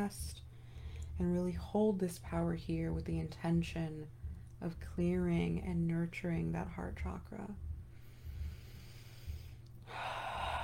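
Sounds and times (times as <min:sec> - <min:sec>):
speech: 0:00.0 - 0:00.4, 0:01.2 - 0:07.7
person breathing during meditative breathwork: 0:00.5 - 0:01.2, 0:07.8 - 0:10.6.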